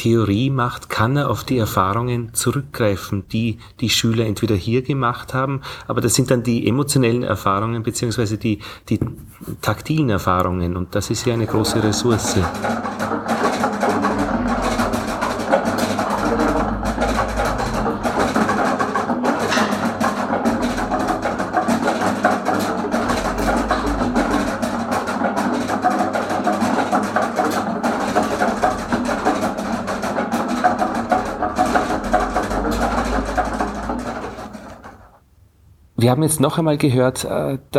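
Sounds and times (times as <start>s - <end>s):
speech: 0.0s - 13.8s, 36.1s - 37.7s
raindrop percussion installation taps: 10.3s - 35.2s
steady low rumble: 13.8s - 21.6s, 22.8s - 25.4s, 28.2s - 35.2s.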